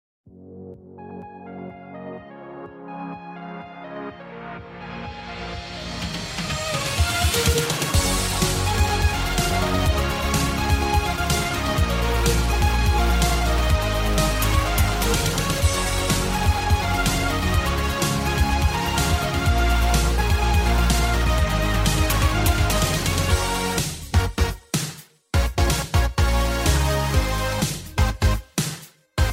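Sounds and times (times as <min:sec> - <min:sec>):
inspiring uplifting summer pop music: 0:03.8 - 0:29.3.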